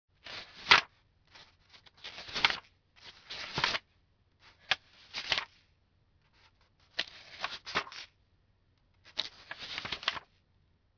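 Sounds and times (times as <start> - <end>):
book pages: 0.2 - 5.6, 6.2 - 8.2, 9.0 - 10.4.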